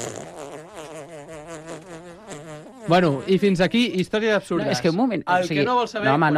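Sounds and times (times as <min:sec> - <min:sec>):
fart: 0:00.0 - 0:04.0
speech: 0:02.9 - 0:06.3.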